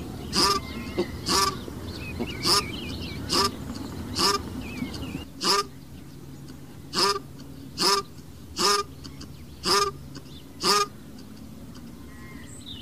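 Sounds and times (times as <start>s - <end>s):
Cape shelduck nasal honk: 0.1s - 5.7s, 6.9s - 10.9s.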